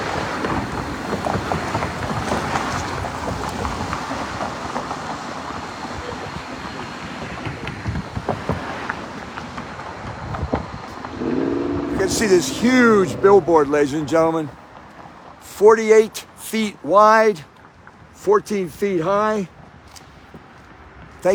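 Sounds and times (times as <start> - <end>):
street traffic outdoors: 0.0 - 21.3
speech: 12.1 - 14.6, 15.6 - 17.5, 18.2 - 19.6.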